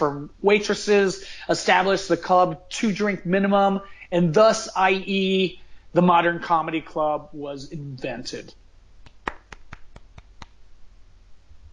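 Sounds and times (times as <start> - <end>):
speech: 0.0 - 8.6
hands clapping: 9.0 - 10.6.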